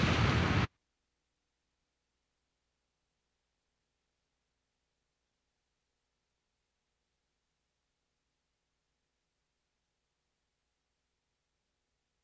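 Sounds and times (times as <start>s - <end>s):
storm in Japan: 0.0s - 0.7s.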